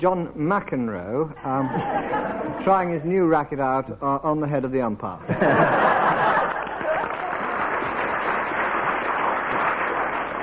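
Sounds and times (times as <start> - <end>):
speech: 0.0 - 6.4
laughter: 1.4 - 2.7, 5.2 - 7.5
audience applause: 5.8 - 10.4.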